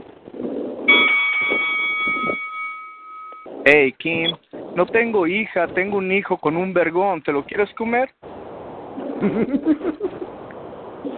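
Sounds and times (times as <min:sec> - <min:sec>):
bell ringing: 0:00.9 - 0:03.5
speech: 0:03.7 - 0:08.2, 0:09.2 - 0:10.3.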